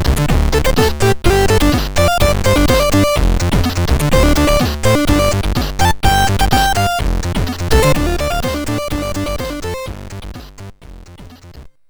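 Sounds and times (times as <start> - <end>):
MOS6581R4 SID sound chip tones: 0.5 - 3.2, 4.1 - 10.0.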